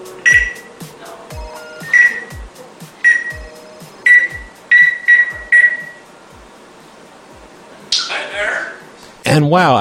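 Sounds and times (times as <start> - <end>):
bird mimicking cordless phone dialing beeps: 0.3 - 0.6, 1.9 - 2.3, 3.1 - 3.4, 4.1 - 6.0.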